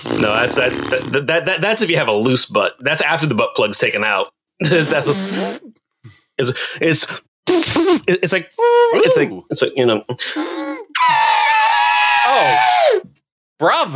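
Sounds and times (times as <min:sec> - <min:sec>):
voice imitating farts: 0:00.0 - 0:01.2, 0:04.6 - 0:05.7, 0:07.5 - 0:08.0
speech: 0:00.1 - 0:05.7, 0:06.4 - 0:11.2, 0:12.4 - 0:13.9.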